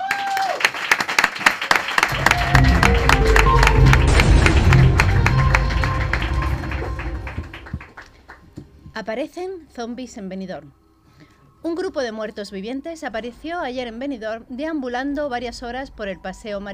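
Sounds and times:
audience applause: 0.0 - 8.6
speech: 9.0 - 10.8, 11.6 - 16.7.

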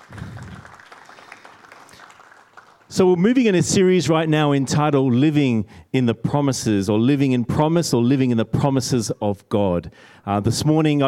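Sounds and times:
audience applause: 0.0 - 3.0
speech: 2.9 - 11.0.

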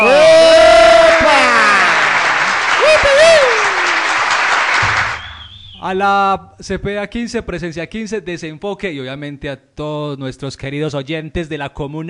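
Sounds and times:
audience applause: 0.0 - 5.6
speech: 5.9 - 12.0.

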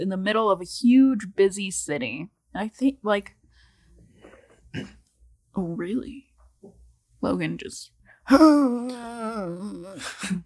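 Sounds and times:
speech: 0.0 - 3.4, 4.7 - 5.0, 5.6 - 10.4
old man groan: 8.3 - 10.3.

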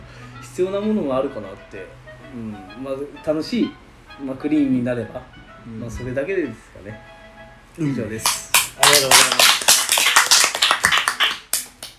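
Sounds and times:
speech: 0.6 - 7.1, 7.8 - 9.5
hands clapping: 8.2 - 11.9.

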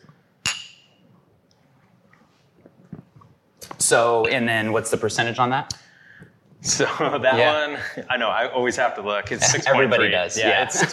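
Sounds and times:
beer glasses clinking in a toast: 0.4 - 1.0
speech: 3.8 - 5.9, 6.6 - 10.9
laughter: 9.4 - 10.9.

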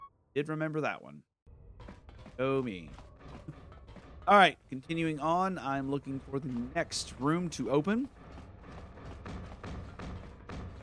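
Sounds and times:
speech: 0.4 - 1.3, 2.4 - 3.1, 4.3 - 8.2
video game someone banging on a door: 8.6 - 10.8.

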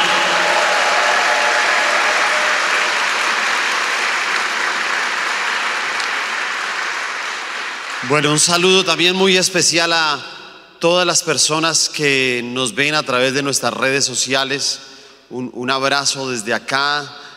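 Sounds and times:
audience applause: 0.0 - 8.5
speech: 8.1 - 17.2.

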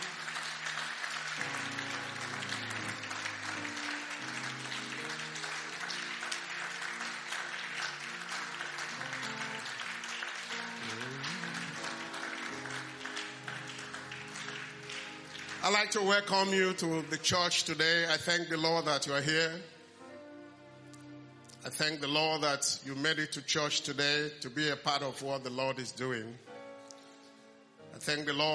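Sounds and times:
audience clapping: 0.0 - 19.1
speech: 15.7 - 19.7, 21.8 - 26.5, 27.9 - 28.5.

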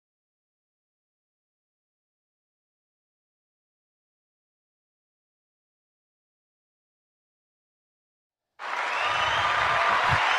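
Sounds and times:
audience applause: 8.6 - 10.3.

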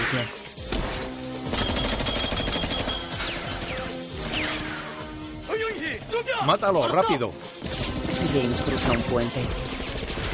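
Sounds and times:
speech: 0.1 - 0.7, 6.2 - 9.7
gunfire in the jungle scene of a film: 0.7 - 5.0, 7.6 - 10.3.

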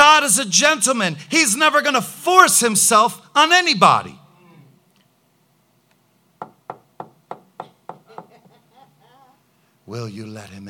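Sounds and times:
speech: 0.3 - 4.2, 9.9 - 10.6
knocking on a door: 6.4 - 8.5.

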